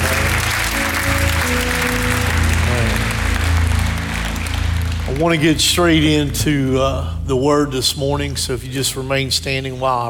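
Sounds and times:
audience clapping hands: 0.0 - 6.4
speech: 5.2 - 10.0.

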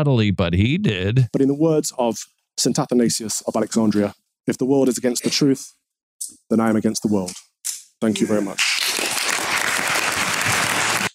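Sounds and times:
speech: 0.0 - 8.9
audience applause for a clergyman after a speech: 8.6 - 11.1.

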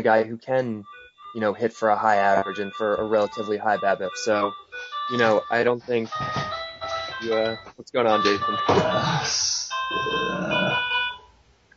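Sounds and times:
speech: 0.0 - 6.6, 7.2 - 10.9
phone ringing during recording: 0.8 - 11.4.

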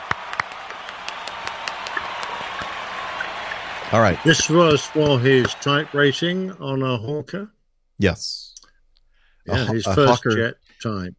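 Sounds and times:
crowd applause: 0.0 - 6.6
speech: 3.9 - 8.4, 9.5 - 11.1.

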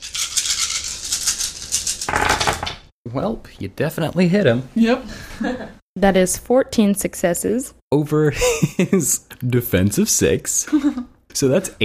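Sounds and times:
handful of dice rattling and clattering: 0.0 - 2.7
speech: 3.1 - 11.8.

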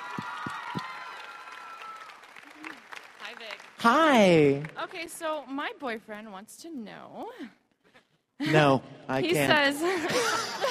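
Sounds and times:
audience applause for a male performer: 0.0 - 5.2
speech: 3.8 - 7.6, 8.4 - 10.6
laughter: 9.7 - 10.6.

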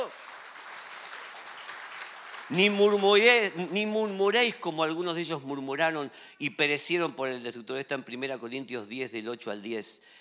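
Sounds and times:
audience applause: 0.0 - 3.4
speech: 2.5 - 10.2.

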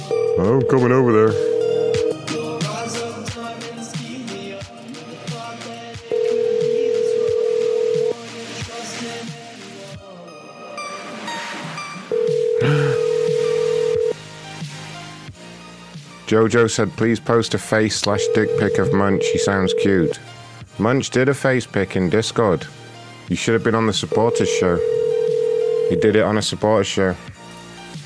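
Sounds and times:
telephone dial tone while calling a number: 0.0 - 2.2, 6.1 - 8.1, 12.1 - 14.2, 18.1 - 20.2, 24.1 - 26.2
speech: 0.4 - 1.5, 16.3 - 25.0, 25.9 - 27.4.

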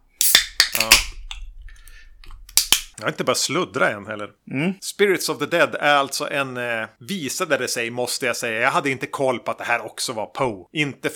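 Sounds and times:
beer being opened: 0.1 - 1.4
speech: 0.8 - 1.1, 3.0 - 11.1.

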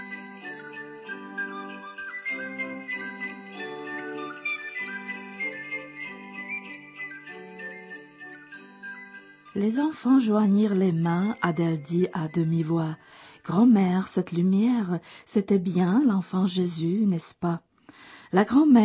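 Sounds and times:
bells ringing outside: 0.0 - 13.3
speech: 9.6 - 17.7, 18.3 - 18.8.

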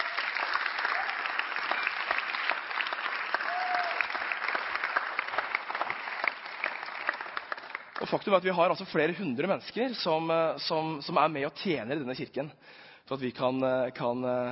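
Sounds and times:
audience applauding volunteers: 0.0 - 8.3
speech: 8.0 - 14.5.

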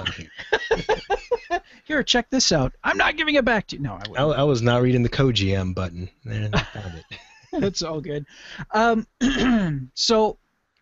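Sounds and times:
laughter: 0.0 - 1.7, 6.5 - 7.8
speech: 1.9 - 10.4
person clearing throat: 9.2 - 9.8.

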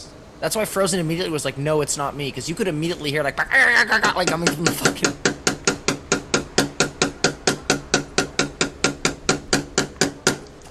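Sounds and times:
speech: 0.4 - 5.4
rapid knocking on a door: 4.3 - 10.4.

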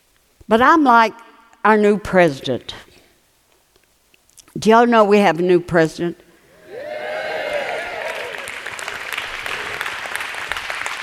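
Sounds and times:
speech: 0.5 - 2.9, 4.6 - 6.2
voices cheering: 6.5 - 10.6
audience clapping: 6.7 - 11.0.

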